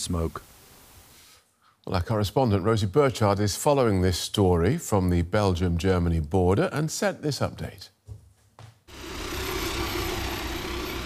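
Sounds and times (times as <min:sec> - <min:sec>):
speech: 0:00.0 - 0:00.6, 0:01.8 - 0:08.0
firefighting plane engine flying overhead: 0:08.9 - 0:11.0.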